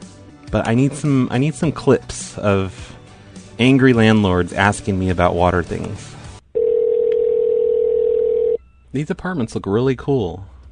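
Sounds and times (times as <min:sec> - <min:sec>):
speech: 0:00.5 - 0:03.0, 0:03.6 - 0:06.1, 0:08.9 - 0:10.5
telephone dial tone before a call: 0:06.6 - 0:08.6.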